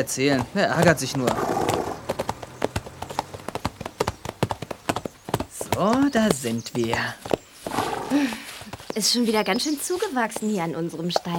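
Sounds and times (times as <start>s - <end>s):
speech: 0.0s - 1.6s, 5.8s - 7.3s, 8.1s - 8.4s, 9.0s - 11.3s
horses' hooves clip-clopping: 0.0s - 11.3s.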